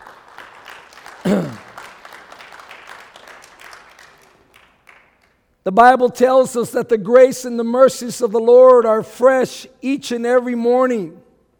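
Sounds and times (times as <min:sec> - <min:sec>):
audience clapping: 0:00.0 - 0:05.5
speech: 0:05.7 - 0:11.2.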